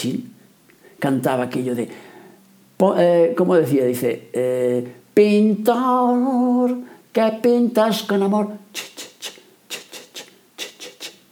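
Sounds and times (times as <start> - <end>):
speech: 0.0 - 0.3, 1.0 - 2.1, 2.8 - 9.1
maracas shaking: 8.7 - 11.3.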